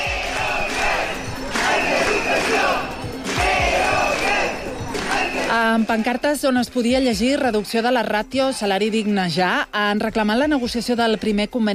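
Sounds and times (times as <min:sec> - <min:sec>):
crowd of protesting workers chanting and shouting outside parliament: 0:00.0 - 0:09.1
speech: 0:05.8 - 0:11.7.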